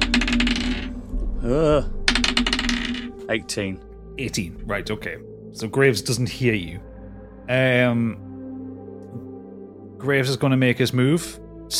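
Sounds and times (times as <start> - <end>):
dice clattering across a table: 0.0 - 0.9, 2.1 - 3.1
speech: 1.5 - 1.9, 3.3 - 6.9, 7.5 - 8.3, 10.0 - 11.7.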